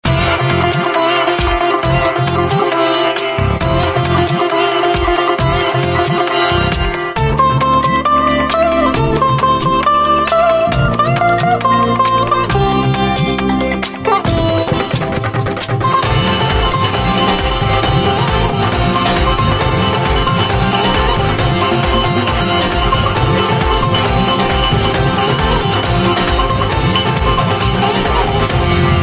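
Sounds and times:
sitar: 0.0 - 29.0.

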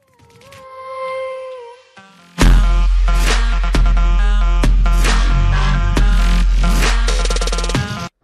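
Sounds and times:
intro music: 2.0 - 8.2.

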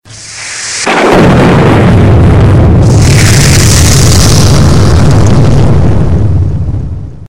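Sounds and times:
big bomb explosion: 0.0 - 7.2.

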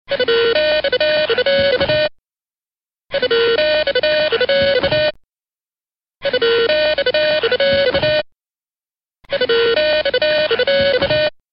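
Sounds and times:
ringtone: 0.1 - 2.2, 3.1 - 5.2, 6.2 - 8.3, 9.3 - 11.4.

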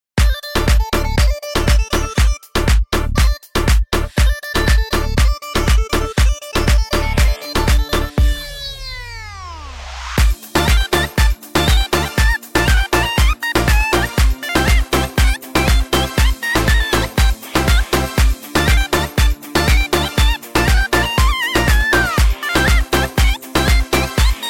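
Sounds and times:
Bulgarian music beat: 0.2 - 24.4.

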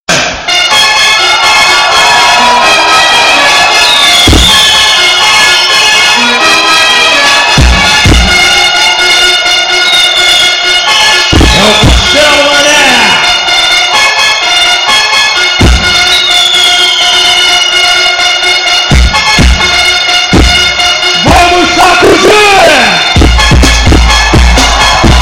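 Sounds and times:
Brazilian funk music: 0.1 - 25.2.

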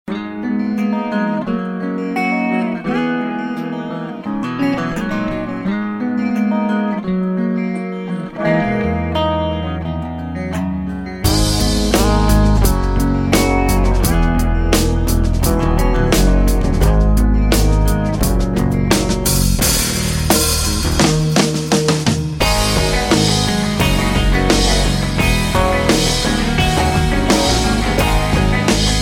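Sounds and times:
rock music: 0.1 - 29.0.

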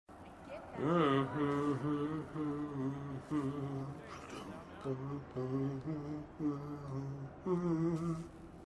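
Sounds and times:
person humming: 0.8 - 8.4.

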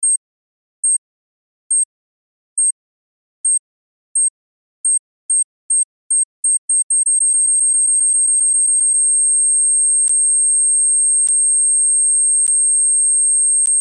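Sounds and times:
beep ringtone: 6.1 - 13.7.

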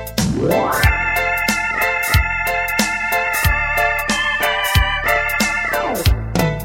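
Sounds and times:
melody: 0.2 - 6.5.

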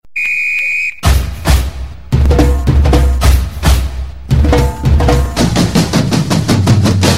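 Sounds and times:
drums: 1.0 - 7.1.

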